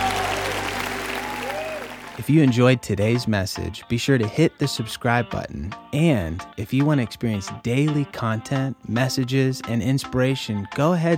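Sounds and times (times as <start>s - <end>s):
audience clapping: 0.0s - 2.3s
speech: 2.2s - 11.1s.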